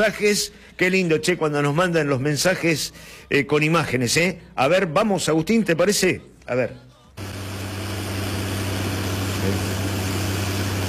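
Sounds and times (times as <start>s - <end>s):
speech: 0.0s - 7.3s, 9.5s - 9.7s
machine chopping corn for silage: 7.2s - 10.8s.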